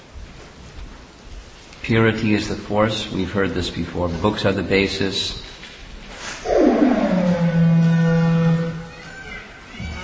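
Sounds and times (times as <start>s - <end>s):
speech: 1.8s - 5.5s
cow mooing: 6.9s - 8.9s.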